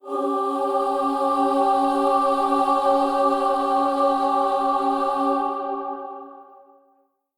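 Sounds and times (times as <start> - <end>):
requiem choir: 0.0 - 6.9.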